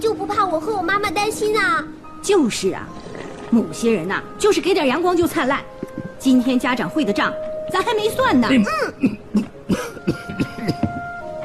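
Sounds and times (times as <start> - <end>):
speech: 0.1 - 9.9
man coughing after choking on food: 8.7 - 11.1.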